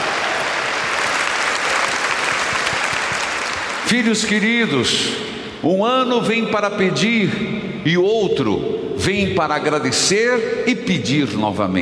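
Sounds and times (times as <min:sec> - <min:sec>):
crowd clapping: 0:00.0 - 0:04.4
speech: 0:03.9 - 0:11.8.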